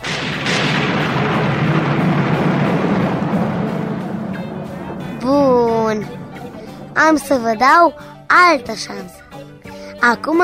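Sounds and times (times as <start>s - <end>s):
thunder rumbling: 0.0s - 8.3s
speech: 7.1s - 10.4s.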